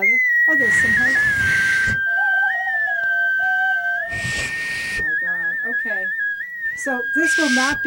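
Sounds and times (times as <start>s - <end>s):
small frog-shaped whistles blown together: 0.0s - 7.8s
loud breathy hissing bursts: 1.2s - 2.0s, 4.1s - 5.2s, 7.2s - 7.8s
speech: 6.8s - 7.8s.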